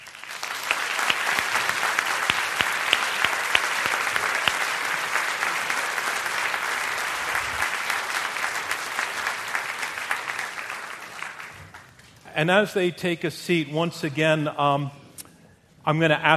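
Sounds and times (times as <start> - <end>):
crowd applauding welcoming debaters: 0.0 - 12.1
speech: 12.4 - 15.0, 15.9 - 16.3.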